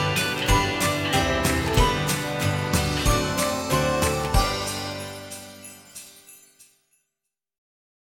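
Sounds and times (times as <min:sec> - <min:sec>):
country swing Christmas song: 0:00.0 - 0:05.6.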